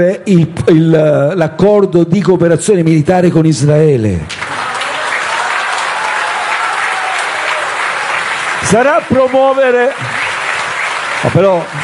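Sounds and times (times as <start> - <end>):
speech: 0.0 - 4.4, 8.6 - 10.2, 11.2 - 11.8
audience applause: 4.3 - 11.8.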